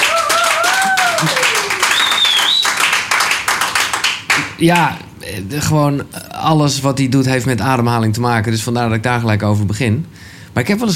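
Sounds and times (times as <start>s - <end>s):
applause: 0.0s - 4.9s
speech: 4.6s - 10.9s.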